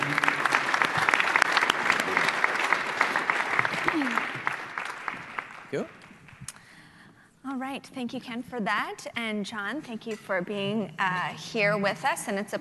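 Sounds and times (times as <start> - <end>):
audience applause welcoming two speakers onto a conference stage: 0.0 - 6.3
speech: 5.7 - 6.0, 7.6 - 12.5.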